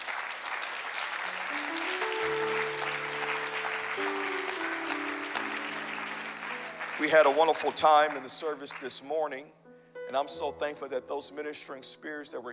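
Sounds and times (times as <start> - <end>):
audience clapping: 0.0 - 9.2
sustained organ or keyboard tones: 1.4 - 11.2
speech: 7.0 - 12.5.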